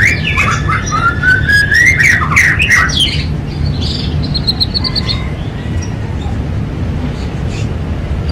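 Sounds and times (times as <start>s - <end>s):
domestic canary song with sustained rolling trill and whistled phrases: 0.0s - 8.3s.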